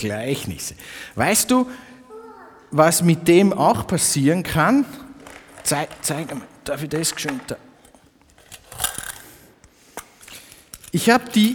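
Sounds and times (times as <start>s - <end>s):
speech: 0.0s - 1.9s, 2.7s - 5.0s, 5.6s - 7.7s, 10.9s - 11.5s
loose coins handled: 7.8s - 11.5s.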